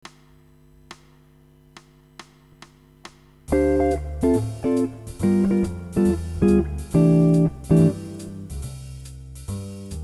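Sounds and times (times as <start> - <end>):
guitar chords with inversions: 3.5 - 8.6.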